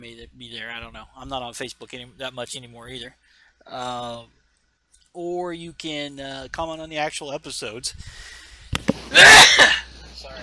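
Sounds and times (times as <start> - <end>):
speech: 0.0 - 4.4, 5.2 - 10.4
sharp intakes of breath: 8.0 - 8.8
sneeze: 9.1 - 9.9.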